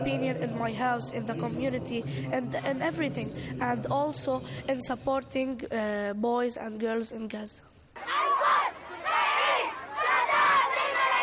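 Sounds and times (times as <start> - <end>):
speech: 0.0 - 8.2
protest crowd shouting: 8.0 - 11.2.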